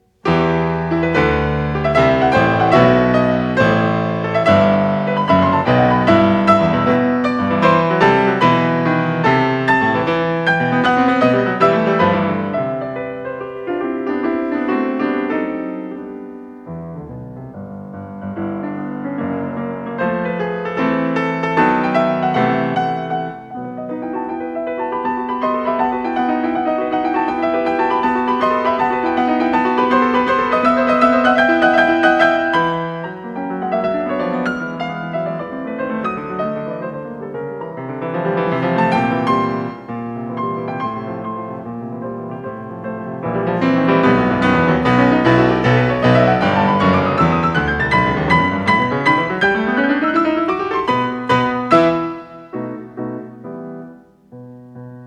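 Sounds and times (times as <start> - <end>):
prestissimo piano sonata movement in E major: 0.0 - 55.0.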